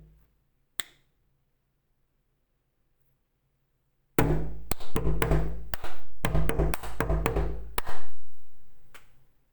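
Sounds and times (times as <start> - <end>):
percussion motif: 4.2 - 9.2.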